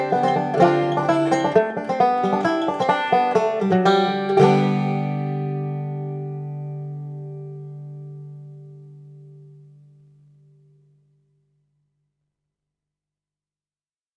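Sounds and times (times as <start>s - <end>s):
banjo playing a polska: 0.0s - 9.9s.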